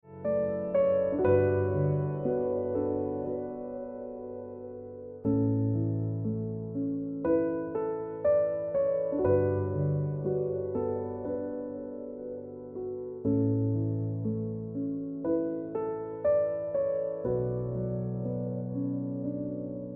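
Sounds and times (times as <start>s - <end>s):
piano music: 0.0s - 19.9s.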